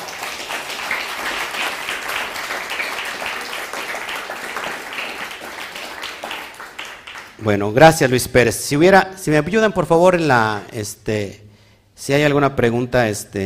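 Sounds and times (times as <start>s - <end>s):
strong applause: 0.0s - 7.5s
speech: 7.4s - 11.4s, 12.0s - 13.4s.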